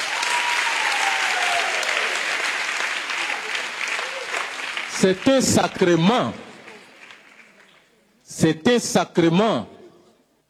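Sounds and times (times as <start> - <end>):
audience applause: 0.0 - 7.9
speech: 5.0 - 6.4, 8.4 - 9.7.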